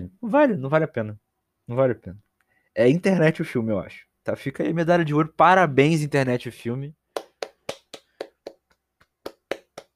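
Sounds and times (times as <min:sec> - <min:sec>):
speech: 0:00.3 - 0:02.2, 0:02.8 - 0:07.0
single person clapping: 0:07.1 - 0:09.9.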